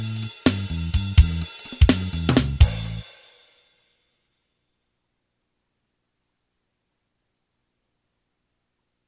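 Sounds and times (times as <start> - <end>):
fast blues song: 0.0 - 3.0.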